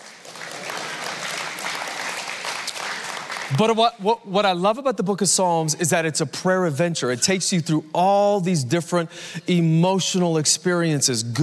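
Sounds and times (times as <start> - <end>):
audience applause: 0.0 - 3.7
speech: 3.5 - 11.4.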